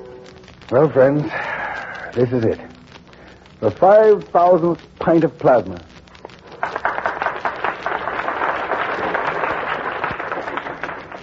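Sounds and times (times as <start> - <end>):
speech: 0.7 - 1.5, 2.1 - 2.7, 3.6 - 5.9
audience applause: 6.5 - 11.2.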